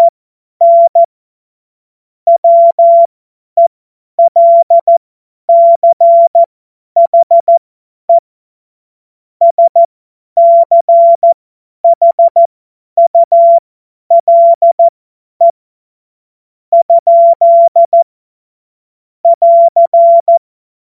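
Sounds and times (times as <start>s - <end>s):
CW Morse code beeps: 0.0s - 1.1s, 2.3s - 3.1s, 4.2s - 7.6s, 9.4s - 15.6s, 16.8s - 18.0s, 19.2s - 20.4s.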